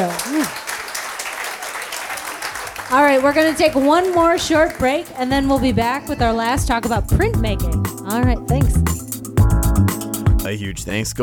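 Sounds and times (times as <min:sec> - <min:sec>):
audience applause: 0:00.0 - 0:05.2
speech: 0:02.9 - 0:09.0, 0:10.5 - 0:11.2.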